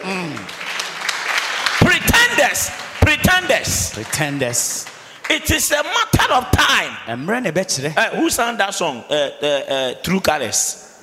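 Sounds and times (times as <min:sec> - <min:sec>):
hand clapping: 0:00.0 - 0:06.8
speech: 0:02.4 - 0:10.8.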